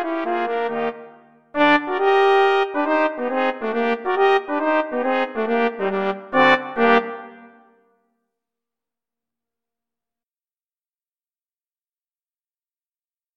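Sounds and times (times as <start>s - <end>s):
brass quartet playing: 0.0s - 7.6s.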